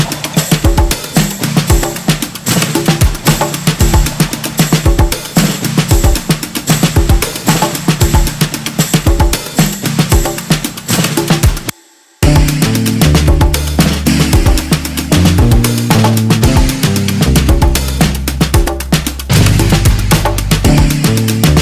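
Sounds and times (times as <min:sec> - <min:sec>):
rare Afro drum percussion: 0:00.0 - 0:21.5.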